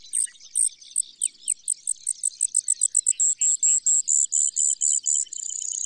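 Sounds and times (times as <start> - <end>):
bird trilling: 0.0 - 5.2.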